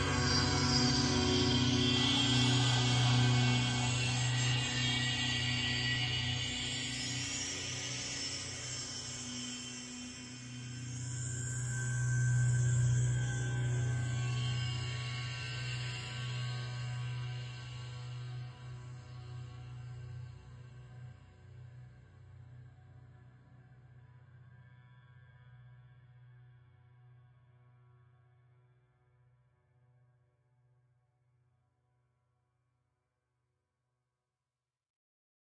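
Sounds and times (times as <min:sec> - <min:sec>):
drones: 0:00.0 - 0:17.4.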